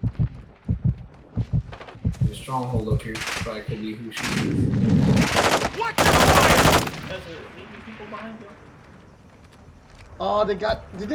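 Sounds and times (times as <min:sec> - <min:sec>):
speech: 0:02.4 - 0:08.7, 0:10.2 - 0:11.1
automatic gunfire in a video game: 0:03.2 - 0:07.3.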